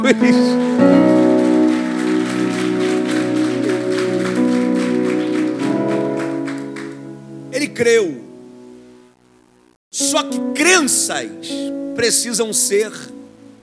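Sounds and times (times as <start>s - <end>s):
speech: 0.0s - 1.2s, 7.8s - 8.2s, 9.9s - 13.2s
audience clapping: 0.0s - 7.3s
sustained keyboard chords: 0.0s - 13.6s.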